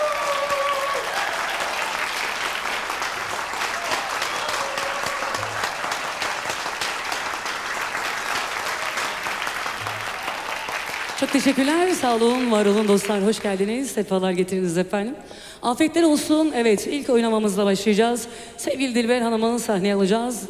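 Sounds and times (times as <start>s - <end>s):
audience applause welcoming a Turkish folk singer onto the stage: 0.0s - 13.5s
speech: 11.2s - 20.4s.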